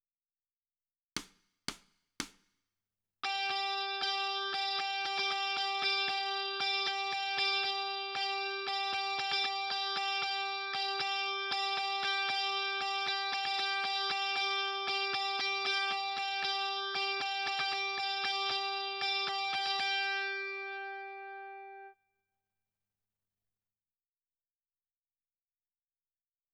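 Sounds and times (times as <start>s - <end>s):
guitar: 3.2s - 22.0s.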